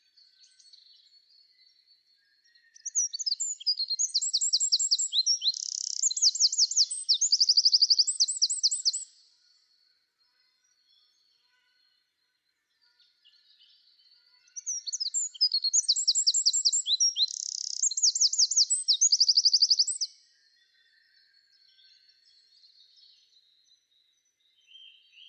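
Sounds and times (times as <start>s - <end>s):
Eurasian wren singing: 2.7s - 9.3s, 14.4s - 20.2s.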